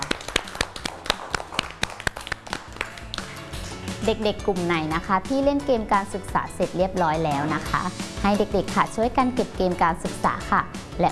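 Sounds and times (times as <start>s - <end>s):
small group of children clapping for themselves: 0.0s - 3.7s
speech: 4.0s - 11.1s.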